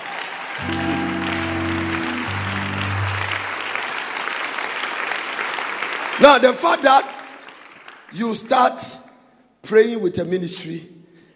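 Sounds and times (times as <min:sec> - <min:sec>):
audience clapping: 0:00.0 - 0:08.2
speech: 0:06.2 - 0:07.2, 0:08.1 - 0:09.0, 0:09.6 - 0:11.0.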